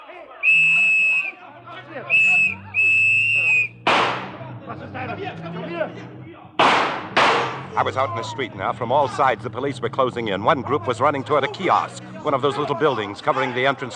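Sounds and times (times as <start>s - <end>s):
laughter: 0.0s - 6.1s, 7.4s - 13.9s
shrill sustained whistle blasts: 0.4s - 3.9s
handgun firing in a dramatized chase: 3.9s - 4.3s, 6.6s - 7.7s
speech: 4.7s - 6.2s, 7.7s - 13.9s.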